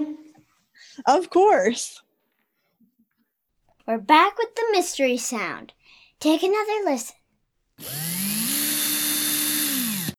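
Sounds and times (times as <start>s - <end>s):
speech: 0.9s - 2.0s, 3.9s - 7.2s, 7.8s - 8.3s
electric drill whining: 7.8s - 10.1s.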